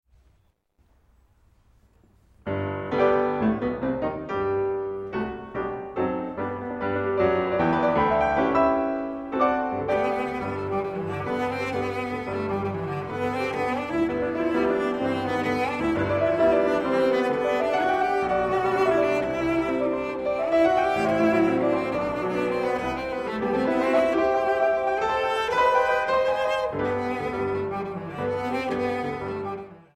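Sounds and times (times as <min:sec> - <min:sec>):
cello and piano sonata played live: 0:02.5 - 0:29.9.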